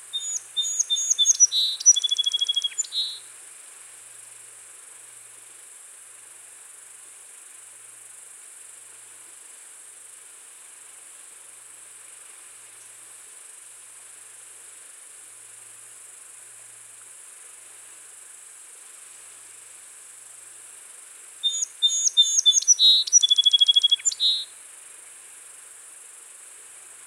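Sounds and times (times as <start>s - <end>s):
song sparrow (Melospiza melodia) singing: 0.1s - 3.2s, 21.5s - 24.4s.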